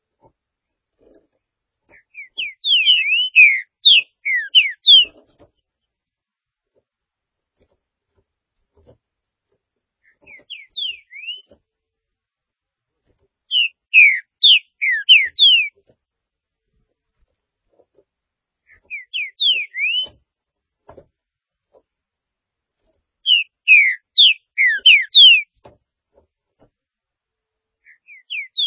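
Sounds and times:
green-winged saltator song: 2.0 - 5.2, 10.2 - 11.5, 13.5 - 15.7, 18.7 - 20.2, 23.2 - 25.5, 27.8 - 28.6.

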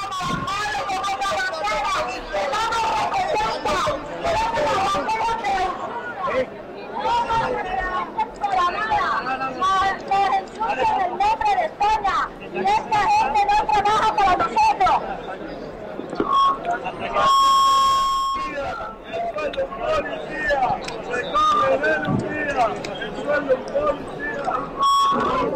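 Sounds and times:
protest crowd chattering and shouting at Puerta del Sol: 0.0 - 25.5
shrill buzzer-like tone: 16.2 - 18.6, 24.8 - 25.5.

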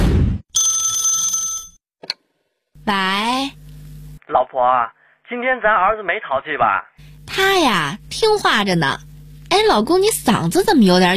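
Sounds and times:
telephone ringing with an incoming call from an unfamiliar number: 0.6 - 1.8
speech: 2.9 - 3.6, 4.3 - 11.1.

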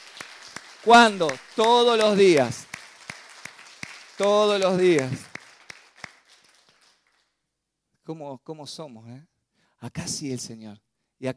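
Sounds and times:
church congregation applauding: 0.0 - 7.4
speech: 0.8 - 2.7, 4.2 - 5.3, 8.1 - 11.3.

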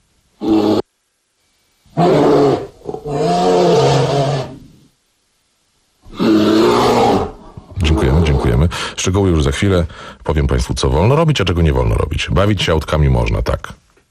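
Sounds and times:
bear roaring: 0.4 - 0.8, 1.9 - 4.8, 6.0 - 8.6
speech: 2.0 - 2.4, 9.1 - 13.8.

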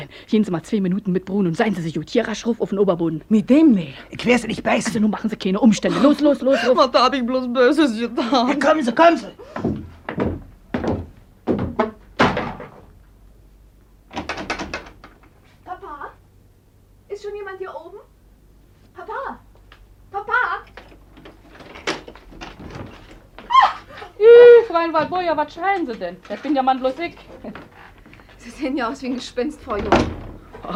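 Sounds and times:
speech: 0.0 - 9.9, 24.9 - 27.6, 28.6 - 30.7
entrance door heavy wooden thunks: 9.7 - 12.9, 14.1 - 15.1, 29.6 - 30.5
entrance door creaky squeaks: 14.1 - 15.2, 20.6 - 24.1, 29.6 - 30.7.

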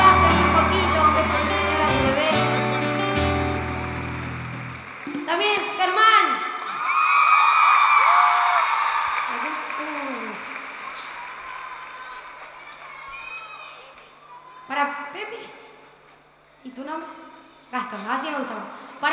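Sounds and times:
concert crowd applauding and cheering: 0.0 - 6.0, 6.6 - 14.2.

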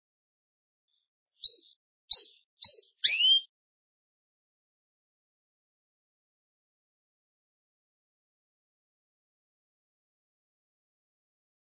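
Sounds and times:
Belgian canary chirping and whistling: 1.4 - 3.5.

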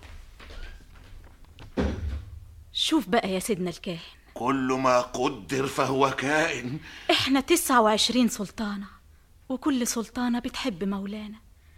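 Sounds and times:
door being closed with a dull thud: 1.6 - 2.4
speech: 2.9 - 11.4.

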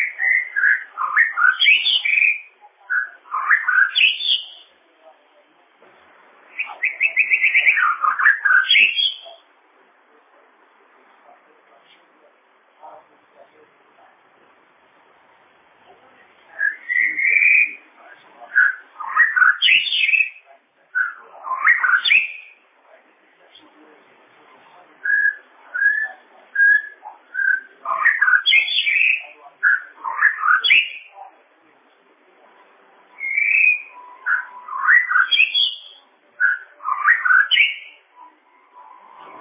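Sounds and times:
bird whistled song: 0.0 - 4.7, 6.5 - 9.4, 16.5 - 17.8, 18.5 - 20.4, 21.0 - 22.6, 25.0 - 31.1, 33.2 - 38.1.

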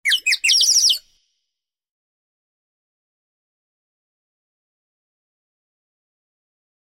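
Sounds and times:
bird chirping: 0.0 - 1.1.

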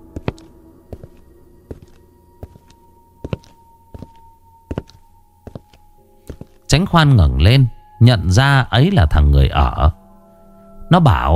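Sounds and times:
thudding footsteps approaching from outside: 0.0 - 6.7
speech: 6.8 - 10.0, 10.9 - 11.3.

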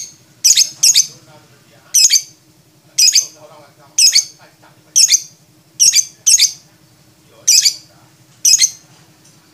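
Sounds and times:
lovebird harsh high squeaks: 0.0 - 1.1, 2.0 - 2.4, 3.0 - 3.4, 4.0 - 4.4, 5.0 - 6.6, 7.5 - 8.8.

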